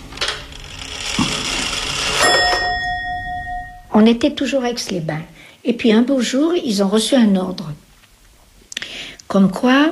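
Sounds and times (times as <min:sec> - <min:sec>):
old clock works whirring and clicking: 0:00.1 - 0:03.8
old Swiss clock chiming: 0:02.0 - 0:04.0
speech: 0:04.0 - 0:07.8, 0:09.3 - 0:09.9.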